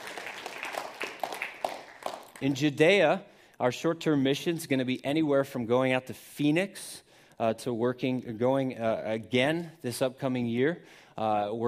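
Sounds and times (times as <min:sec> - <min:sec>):
audience clapping: 0:00.0 - 0:02.7
speech: 0:02.4 - 0:11.6.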